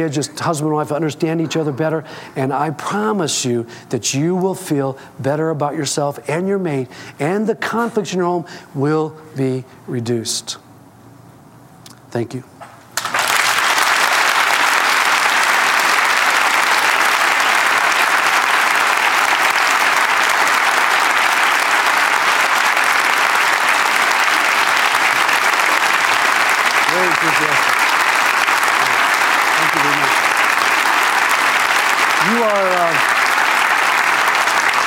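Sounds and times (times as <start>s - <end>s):
speech: 0.0s - 10.6s, 12.1s - 12.5s
enthusiastic audience applause: 13.0s - 34.8s.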